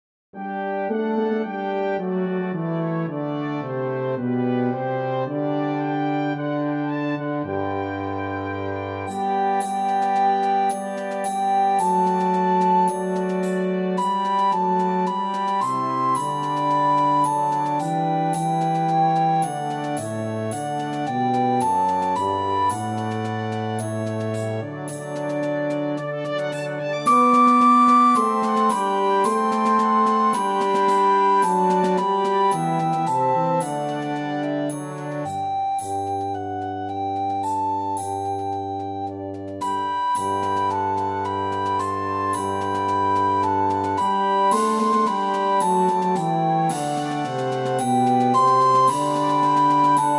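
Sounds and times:
recorder melody: 0:00.4 - 0:50.1.

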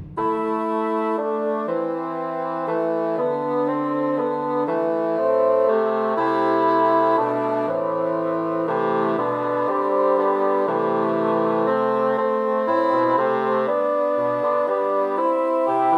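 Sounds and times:
three bassoons playing a Christmas trio: 0:00.2 - 0:15.9.

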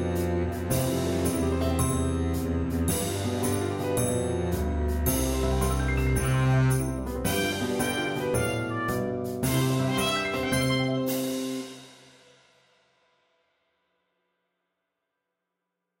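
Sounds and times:
double bass with melody: 0:00.0 - 0:11.6.

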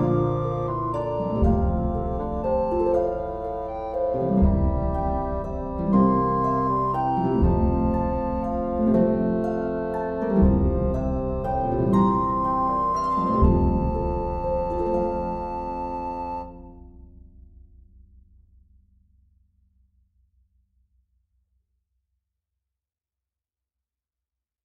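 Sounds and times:
bassoon: 0:00.0 - 0:16.8.

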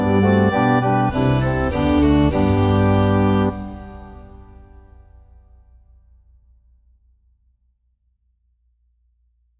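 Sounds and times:
oboe melody: 0:00.0 - 0:04.9.

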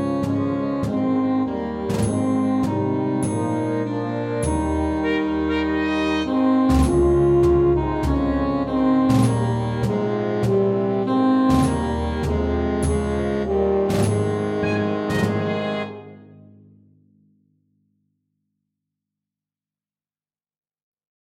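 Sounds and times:
saxophone melody: 0:00.0 - 0:16.6.

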